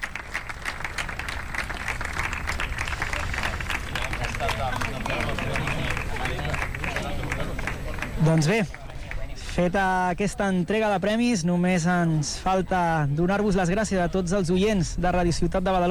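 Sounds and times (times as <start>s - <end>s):
applause for the players: 0.0s - 9.6s
speech: 8.2s - 8.8s, 9.6s - 15.9s.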